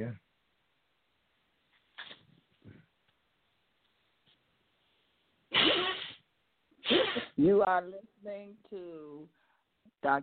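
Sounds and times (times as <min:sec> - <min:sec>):
speech: 0:00.0 - 0:00.2, 0:07.4 - 0:09.4, 0:10.0 - 0:10.2
person blowing nose: 0:05.5 - 0:06.2, 0:06.8 - 0:07.4.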